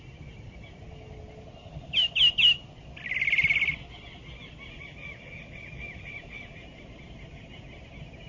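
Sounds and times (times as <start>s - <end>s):
saltator chirping and whistling: 1.9s - 3.8s.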